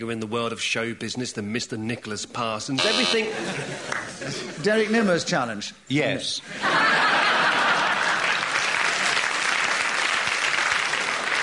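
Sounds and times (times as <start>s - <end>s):
speech: 0.0s - 7.0s
laughter: 3.0s - 4.9s, 6.5s - 8.6s
audience applause: 7.1s - 11.4s.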